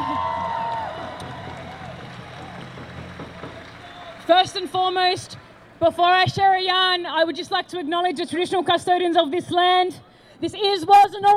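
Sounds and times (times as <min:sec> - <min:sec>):
crowd cheering and clapping: 0:00.0 - 0:05.8
speech: 0:04.3 - 0:11.3.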